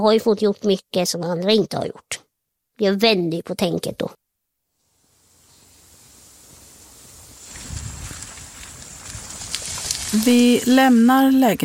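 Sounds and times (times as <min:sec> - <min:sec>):
speech: 0:00.0 - 0:02.2, 0:02.8 - 0:04.2, 0:10.1 - 0:11.6
rain by the water: 0:04.8 - 0:11.0
wind by the water: 0:04.9 - 0:11.6.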